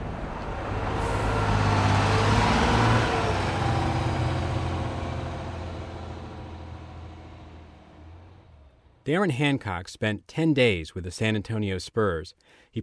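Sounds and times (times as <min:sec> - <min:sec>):
bus driving on Interstate 90: 0:00.0 - 0:09.0
speech: 0:09.0 - 0:12.8.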